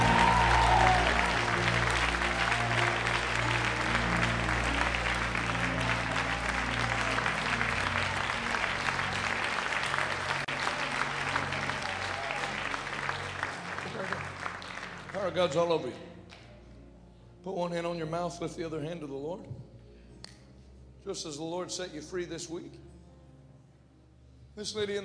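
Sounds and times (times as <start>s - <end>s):
large audience applauding: 0.0s - 15.6s
speech: 15.4s - 16.1s, 17.4s - 19.7s, 21.0s - 22.9s, 24.6s - 25.0s.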